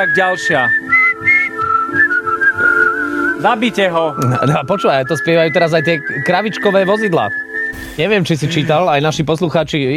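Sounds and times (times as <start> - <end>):
speech: 0.0 - 1.3, 3.4 - 9.9
person whistling a familiar melody: 0.0 - 8.0
soft rhythmic accompaniment: 0.0 - 9.9.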